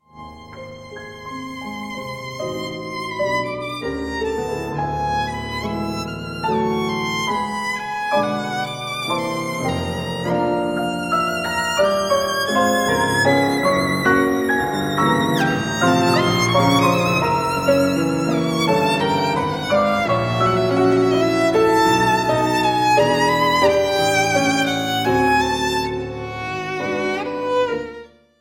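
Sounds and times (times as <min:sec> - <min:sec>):
romance for violin and piano: 0:00.0 - 0:28.3.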